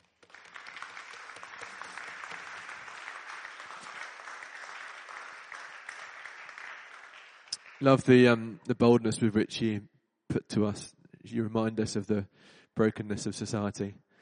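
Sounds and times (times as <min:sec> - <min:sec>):
audience clapping: 0:00.0 - 0:08.3
speech: 0:07.8 - 0:14.0.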